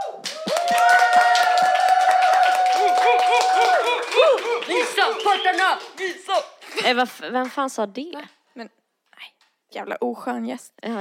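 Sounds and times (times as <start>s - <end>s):
cheers and whoops: 0.0s - 5.7s
group clapping: 0.0s - 7.8s
speech: 5.1s - 10.9s.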